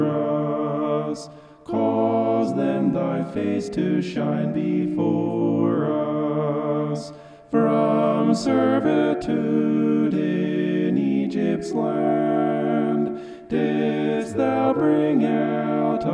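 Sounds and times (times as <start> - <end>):
homophonic vocal singing: 0.0 - 16.1.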